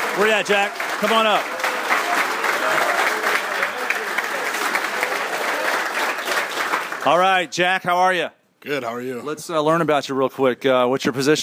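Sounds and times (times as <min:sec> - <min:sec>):
crowd applause: 0:00.0 - 0:07.4
speech: 0:00.2 - 0:01.6, 0:07.0 - 0:11.4.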